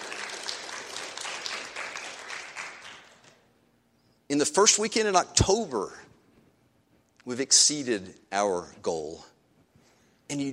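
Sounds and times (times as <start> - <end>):
audience applause: 0.0 - 3.4
speech: 4.3 - 6.1, 7.3 - 9.3, 10.3 - 10.5.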